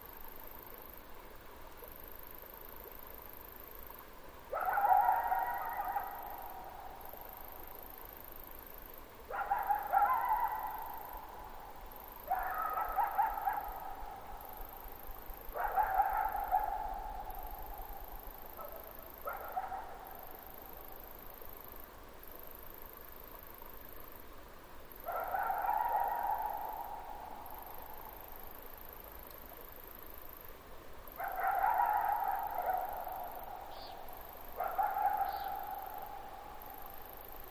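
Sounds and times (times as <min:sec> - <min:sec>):
background hiss: 0:00.0 - 0:37.4
coyote howling: 0:04.6 - 0:07.0, 0:09.4 - 0:11.3, 0:12.3 - 0:14.3, 0:15.5 - 0:17.8, 0:25.1 - 0:28.2, 0:31.2 - 0:36.9.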